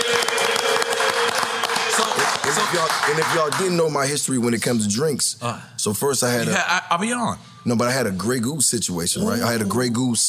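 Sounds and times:
audience applause: 0.0 - 3.8
speech: 2.7 - 10.2.

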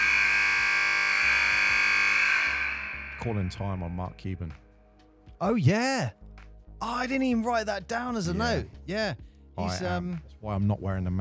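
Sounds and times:
horrible buzzer sound effect: 0.0 - 3.4
speech: 3.2 - 4.6, 5.4 - 11.1.

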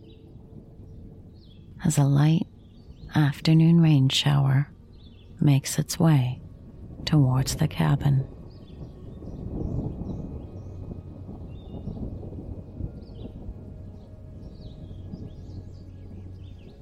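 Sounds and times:
distant rumble of thunder: 0.0 - 16.8
small birds chirping and twittering: 0.0 - 16.8
speech: 1.8 - 2.5, 3.1 - 4.7, 5.4 - 6.4, 7.0 - 8.4.

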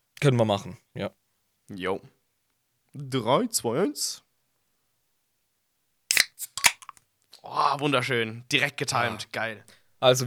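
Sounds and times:
speech: 0.2 - 2.2, 2.9 - 4.2, 7.4 - 10.2
beer bottle being opened: 6.1 - 7.0.

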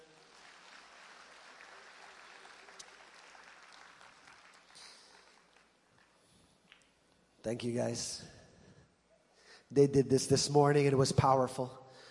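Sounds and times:
audience applause: 0.0 - 6.2
speech: 7.4 - 8.4, 9.7 - 11.8.

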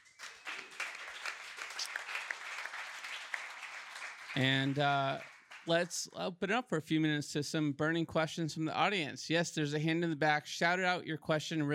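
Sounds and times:
audience applause for a panel at a Web3 and creator-economy event: 0.0 - 6.1
speech: 4.4 - 11.7.

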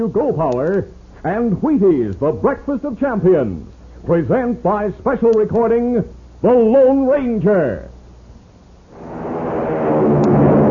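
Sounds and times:
speech: 0.0 - 7.9
American Airlines flagship airliner taking off: 8.9 - 10.6.

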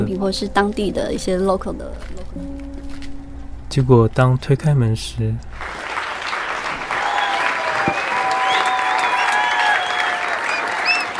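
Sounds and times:
speech: 0.1 - 2.5, 3.7 - 5.8
crowd applause: 5.6 - 11.1
whistles and cheers: 6.1 - 11.1.

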